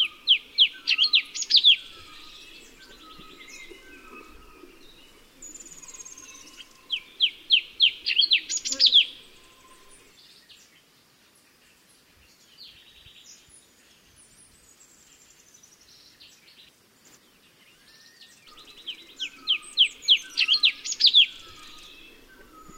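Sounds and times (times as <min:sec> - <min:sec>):
cucak cungko bird calls: 0:00.0 - 0:10.1, 0:18.5 - 0:22.7.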